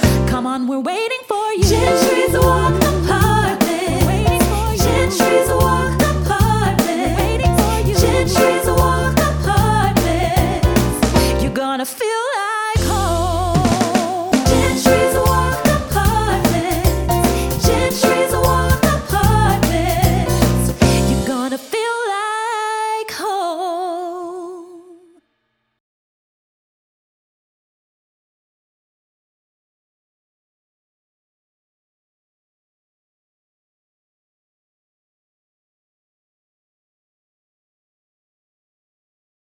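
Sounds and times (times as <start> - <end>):
singing voices: 0.0 - 25.2.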